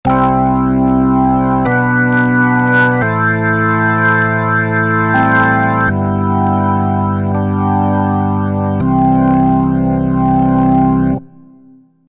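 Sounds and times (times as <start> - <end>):
Crumar Mojo Desktop electronic organ: 0.0 - 11.8.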